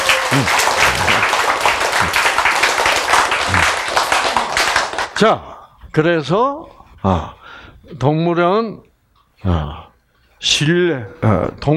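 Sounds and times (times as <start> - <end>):
faint voices and cheers: 0.0 - 1.2
crowd applauding: 0.0 - 5.2
speech: 0.4 - 0.7, 5.2 - 11.7.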